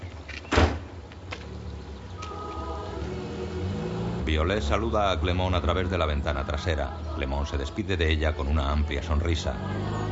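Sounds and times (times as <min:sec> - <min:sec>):
bus door shutting with a pneumatic thump: 0:00.3 - 0:01.0
bus engine idling with a low rumble and faint whine: 0:00.8 - 0:10.1
speech: 0:04.3 - 0:10.1.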